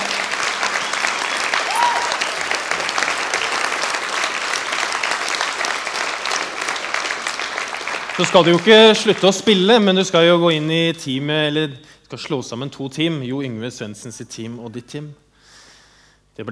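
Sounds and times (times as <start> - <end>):
audience applause: 0.0 - 10.0
speech: 8.2 - 15.2, 16.4 - 16.5.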